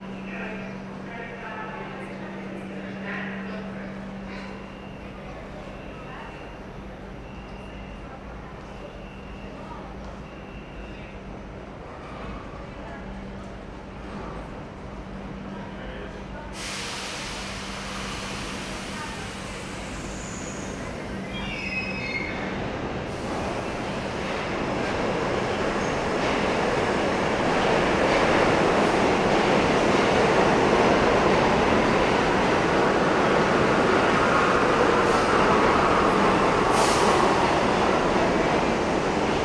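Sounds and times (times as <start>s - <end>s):
subway trains at a New York City train station: 0.0s - 39.4s.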